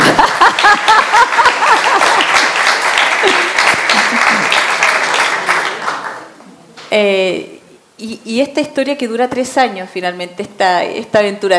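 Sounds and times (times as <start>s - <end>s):
laughter: 0.0s - 2.6s, 3.2s - 4.8s
group applause: 0.0s - 6.3s
speech: 7.0s - 11.5s.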